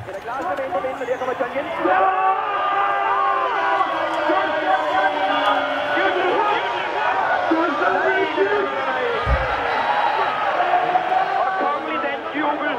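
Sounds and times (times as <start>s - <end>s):
large football crowd cheering and chanting: 0.0s - 12.7s
low thump: 9.2s - 9.7s.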